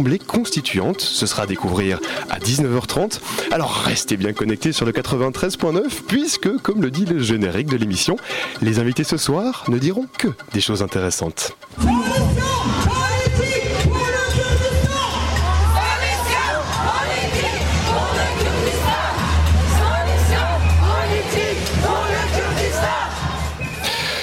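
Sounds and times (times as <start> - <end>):
speech: 0.0 - 12.8
street protest crowd: 11.8 - 24.2.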